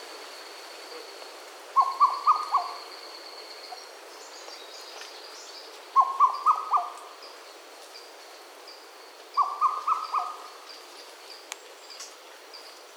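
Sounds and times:
Madagascar cuckoo whistled calls: 1.8s - 2.9s, 6.0s - 7.0s, 9.4s - 10.4s.

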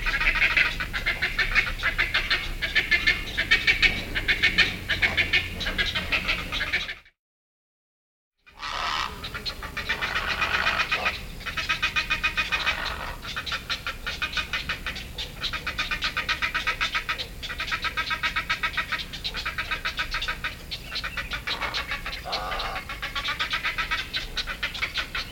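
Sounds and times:
black-headed heron harsh nasal calls: 0.0s - 7.0s, 8.5s - 25.3s.

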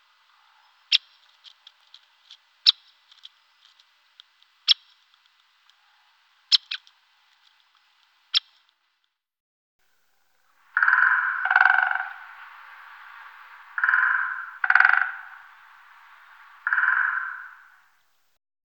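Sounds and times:
great spotted woodpecker calling: 10.6s - 18.1s.

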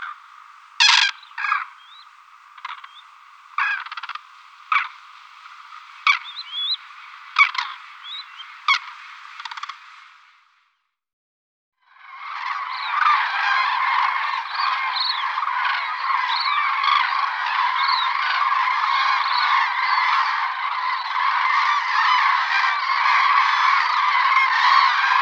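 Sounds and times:
crane honking calls: 0.0s - 10.0s, 12.0s - 25.2s.

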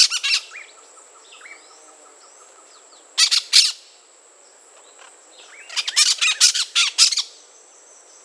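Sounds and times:
brown-throated parakeet calling: 0.0s - 1.6s, 3.2s - 3.8s, 5.4s - 7.3s.

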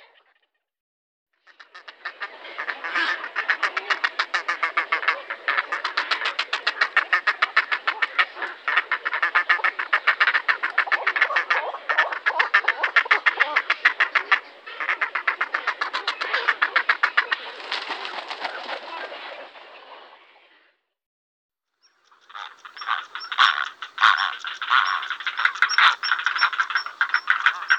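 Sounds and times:
grey heron giving harsh grating clacking calls: 2.6s - 17.2s, 22.0s - 27.7s.

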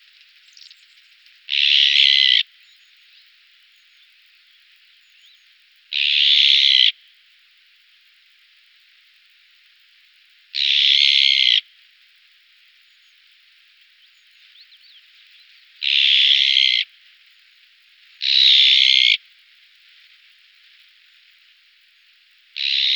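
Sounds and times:
azure-winged magpie harsh rasping and whistled calls: 1.5s - 2.4s, 6.0s - 6.9s, 10.6s - 11.6s, 15.8s - 16.8s, 18.2s - 19.2s, 22.6s - 22.9s.

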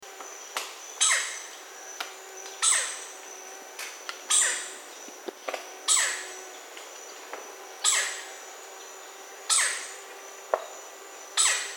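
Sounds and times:
Red-necked Woodpecker calling: 0.9s - 1.6s, 2.4s - 3.4s, 4.2s - 5.2s, 5.8s - 11.7s.

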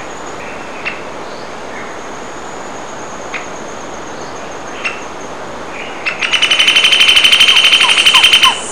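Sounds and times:
yellow eared woodpecker: 6.1s - 8.6s.

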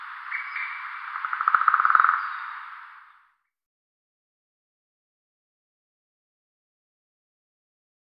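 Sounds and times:
white-backed woodpecker: 0.0s - 3.2s.

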